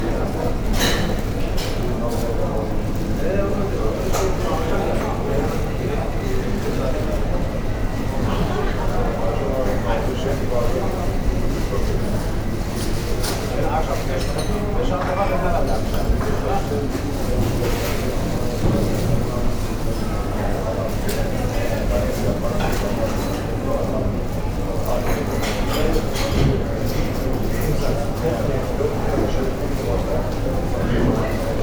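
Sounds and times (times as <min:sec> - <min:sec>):
shopping centre ambience: 0:00.0 - 0:31.6.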